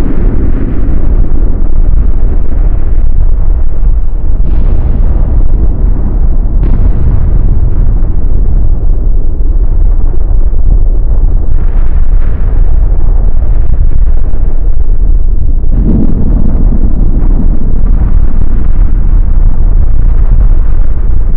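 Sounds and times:
thunder: 0:00.0 - 0:21.3.

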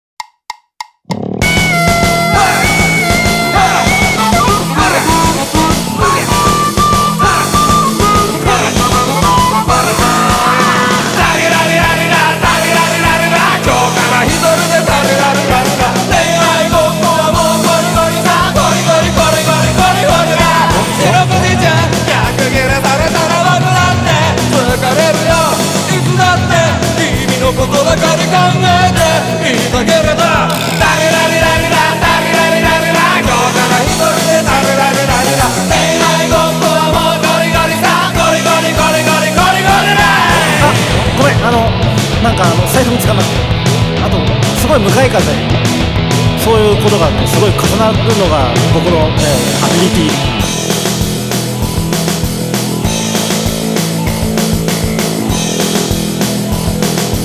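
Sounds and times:
backing track without guitar: 0:00.8 - 0:57.2.

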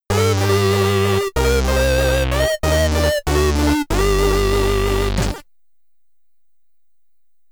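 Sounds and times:
SID stereo chiptune game over music: 0:00.1 - 0:05.4.

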